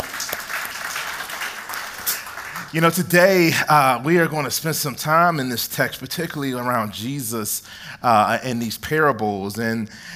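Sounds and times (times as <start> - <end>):
audience applause: 0.0 - 2.9
speech: 2.1 - 10.1.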